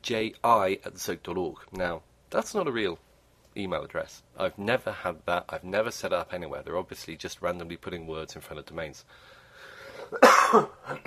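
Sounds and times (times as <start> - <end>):
speech: 0.0 - 3.0, 3.6 - 9.4, 10.1 - 11.0
person coughing: 10.0 - 11.0.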